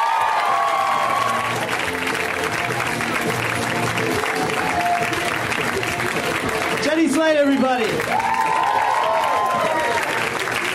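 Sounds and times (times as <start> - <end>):
whoops and shouts from the crowd: 0.0 - 1.6, 8.0 - 10.2
audience applauding and cheering: 0.0 - 10.7
speech: 7.2 - 8.3.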